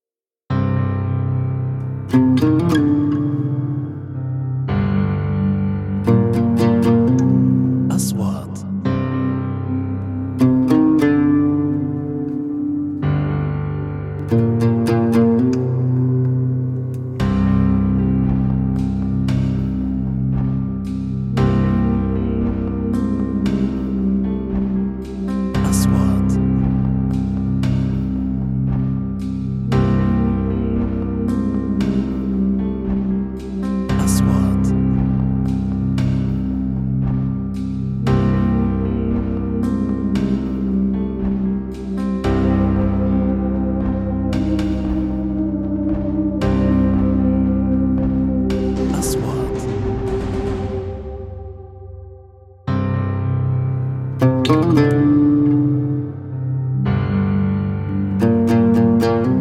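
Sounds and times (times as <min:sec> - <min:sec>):
documentary music: 0:00.5 - 0:59.3.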